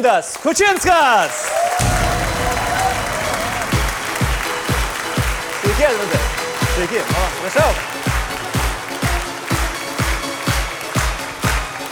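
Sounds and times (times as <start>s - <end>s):
speech: 0.0s - 2.7s, 5.8s - 7.9s
audience applause welcoming a veteran singer onto the stage: 0.0s - 11.8s
low thumps: 1.8s - 5.8s.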